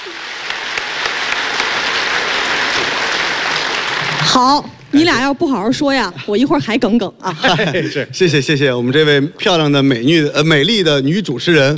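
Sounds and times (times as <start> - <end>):
audience applause: 0.0 - 4.7
speech: 4.2 - 11.7
laughter: 7.2 - 8.2.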